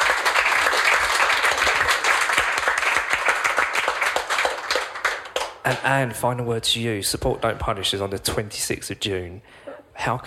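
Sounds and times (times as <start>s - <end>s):
audience applause: 0.0s - 5.8s
speech: 5.7s - 10.2s.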